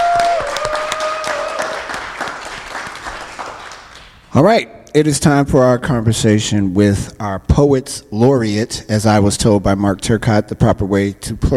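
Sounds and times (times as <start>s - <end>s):
audience applause: 0.0s - 4.2s
speech: 4.4s - 11.5s.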